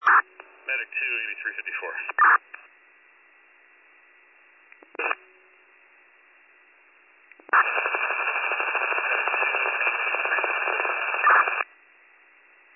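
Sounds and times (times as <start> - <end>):
portable radio hiss: 0.0 - 2.7, 7.5 - 11.6
speech: 1.3 - 2.6.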